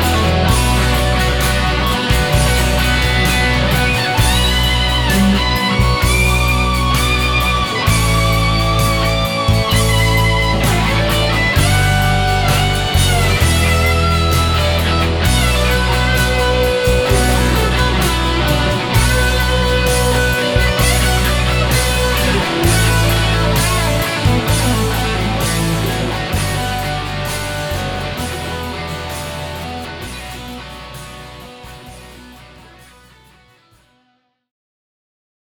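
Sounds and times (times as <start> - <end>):
guitar solo through a multi-effects processor: 0.0 - 34.2.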